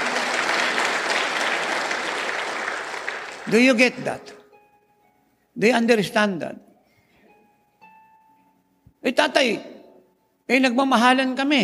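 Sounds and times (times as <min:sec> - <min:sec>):
audience applause: 0:00.0 - 0:04.1
speech: 0:03.4 - 0:04.4, 0:05.6 - 0:06.7, 0:09.0 - 0:09.7, 0:10.5 - 0:11.6.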